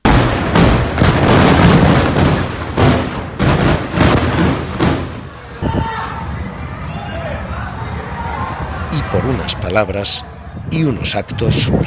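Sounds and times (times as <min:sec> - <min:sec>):
bomb explosions: 0:00.0 - 0:08.9
speech: 0:09.2 - 0:11.8.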